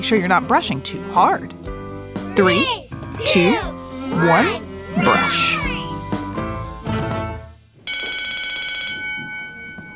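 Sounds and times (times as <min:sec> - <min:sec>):
speech: 0:00.0 - 0:01.7, 0:02.4 - 0:05.7
bell ringing: 0:07.9 - 0:09.9.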